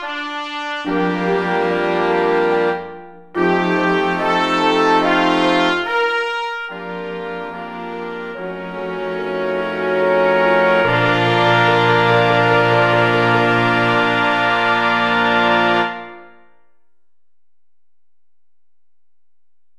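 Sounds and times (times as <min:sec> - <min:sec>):
chorale music: 0:00.8 - 0:16.4.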